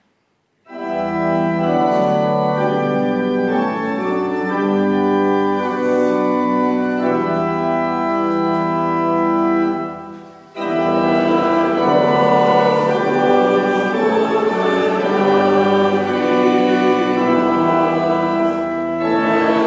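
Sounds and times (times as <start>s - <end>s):
congregation singing: 0.7s - 19.6s.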